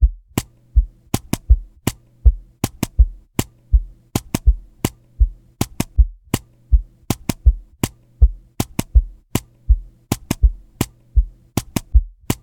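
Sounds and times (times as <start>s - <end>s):
drums: 0.0s - 12.4s.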